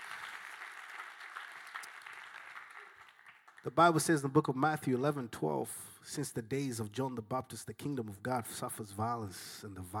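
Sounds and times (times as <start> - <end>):
audience clapping: 0.0 - 4.3
speech: 3.6 - 9.9.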